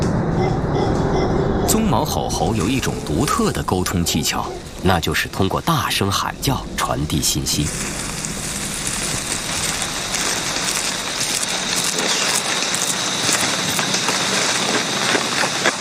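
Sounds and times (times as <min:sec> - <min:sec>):
rainforest rain pouring: 0:01.0 - 0:15.8
speech: 0:01.8 - 0:08.1.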